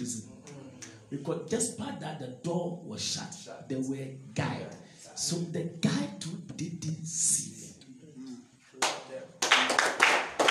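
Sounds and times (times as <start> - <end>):
speech: 1.1 - 7.6
hands clapping during a midnight prayer session: 8.8 - 10.4.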